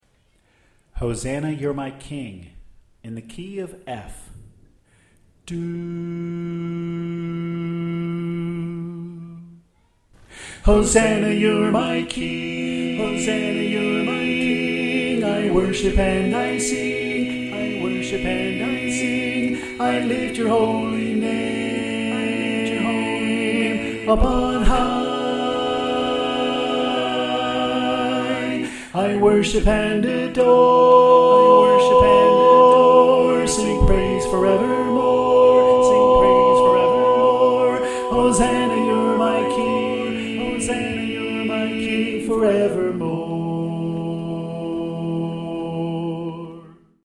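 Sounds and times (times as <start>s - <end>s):
soprano singing: 10.7s - 46.9s.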